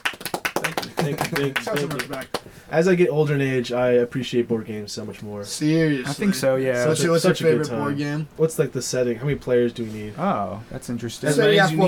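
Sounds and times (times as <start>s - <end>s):
applause: 0.0s - 2.5s
speech: 1.0s - 11.8s.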